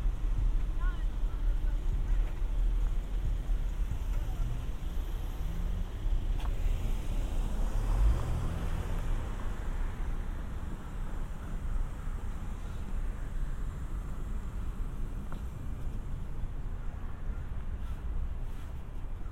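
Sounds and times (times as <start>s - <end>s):
traffic rumble in San Diego: 0.0s - 19.3s
vehicle passing: 4.0s - 12.9s.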